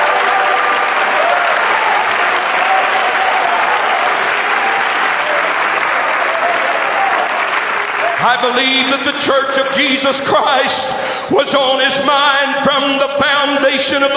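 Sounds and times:
audience clapping: 0.0 - 10.4
speech: 8.2 - 14.1.

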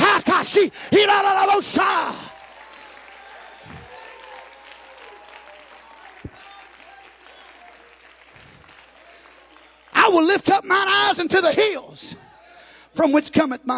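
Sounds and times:
speech: 0.6 - 2.2, 10.1 - 12.2, 13.0 - 13.7
audience clapping: 1.0 - 11.2.

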